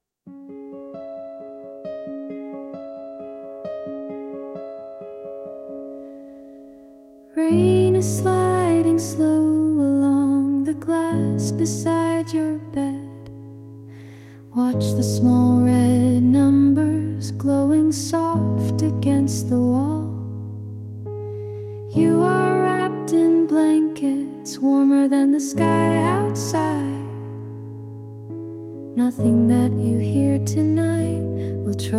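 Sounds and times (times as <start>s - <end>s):
lullaby singing: 7.2s - 13.6s, 14.5s - 20.3s, 21.8s - 27.8s, 28.9s - 31.9s.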